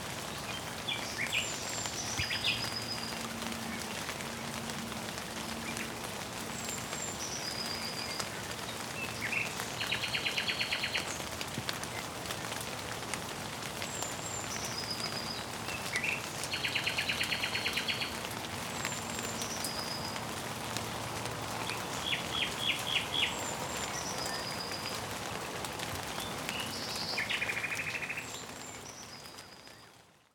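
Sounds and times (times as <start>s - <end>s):
rain: 0.0s - 30.3s
birds: 0.2s - 12.6s, 13.6s - 30.2s.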